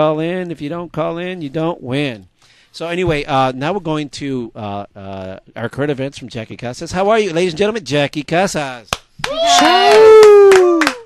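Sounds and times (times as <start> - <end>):
speech: 0.0 - 10.7
applause: 8.9 - 11.0
sustained wavering vocal whoop: 9.2 - 11.0.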